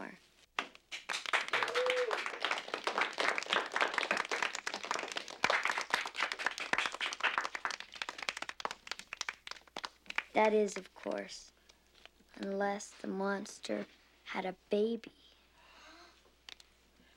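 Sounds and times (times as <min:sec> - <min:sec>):
crowd applauding and cheering: 0:00.6 - 0:10.4
speech: 0:10.4 - 0:11.6, 0:12.4 - 0:15.2.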